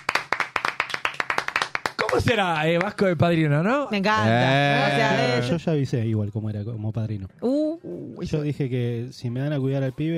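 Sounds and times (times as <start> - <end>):
brisk, steady hand clapping: 0.0 - 3.0
speech: 2.1 - 10.1.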